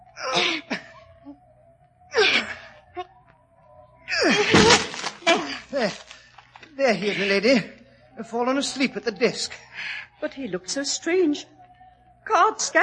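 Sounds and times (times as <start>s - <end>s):
door being forced and broken down: 4.3s - 6.1s
speech: 6.9s - 11.6s, 12.3s - 12.8s.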